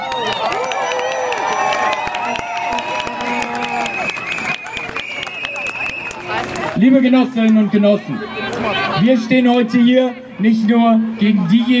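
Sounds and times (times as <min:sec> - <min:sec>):
crowd applause: 0:00.0 - 0:07.1
speech: 0:06.8 - 0:11.7.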